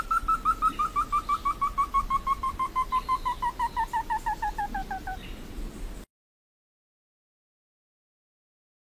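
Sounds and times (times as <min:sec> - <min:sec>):
Slaty bristlefront singing ringing whistled notes: 0:00.0 - 0:05.2.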